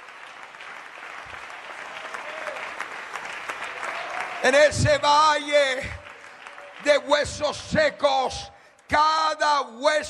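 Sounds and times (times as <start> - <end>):
loud crowd applause: 0.0 - 7.4
speech: 4.4 - 6.0, 6.8 - 10.0.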